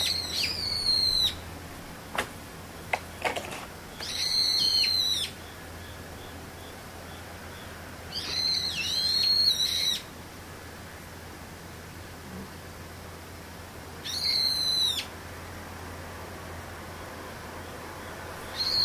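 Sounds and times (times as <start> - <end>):
bird chattering calls: 0.0 - 1.4, 2.8 - 10.1, 17.6 - 18.8
low steady hum: 0.0 - 18.8.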